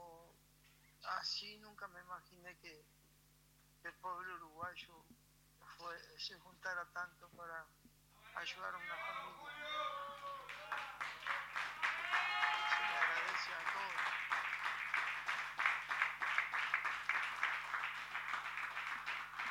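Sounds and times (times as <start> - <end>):
speech: 1.2 - 3.0, 3.8 - 11.4
crowd applause: 9.0 - 19.4.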